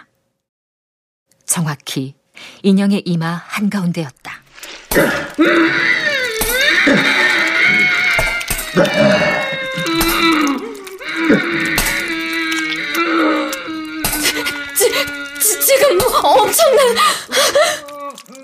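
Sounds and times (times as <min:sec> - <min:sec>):
speech: 0:01.5 - 0:04.4, 0:05.0 - 0:06.0, 0:08.8 - 0:09.4, 0:15.8 - 0:17.8
long agonized scream: 0:05.0 - 0:18.4.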